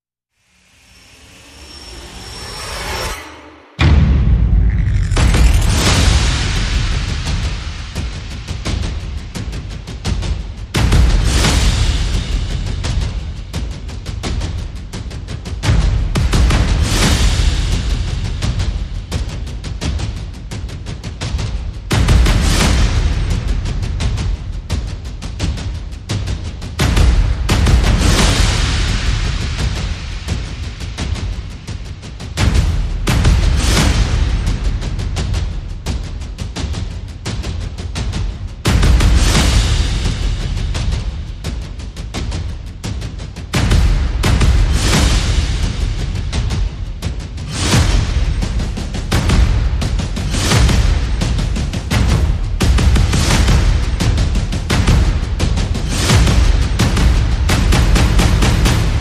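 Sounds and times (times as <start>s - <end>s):
sound effects: 0.4s - 6.5s
percussion: 0.4s - 58.9s.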